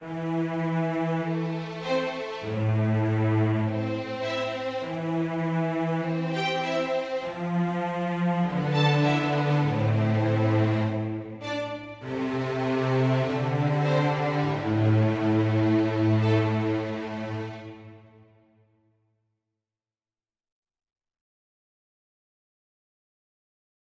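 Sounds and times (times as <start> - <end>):
mysterious music: 0.0 - 18.0.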